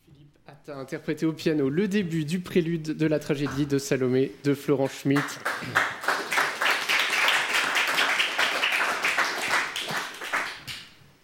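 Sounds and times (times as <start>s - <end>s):
speech: 0.5s - 6.0s
audience applause after piano piece: 5.2s - 10.8s.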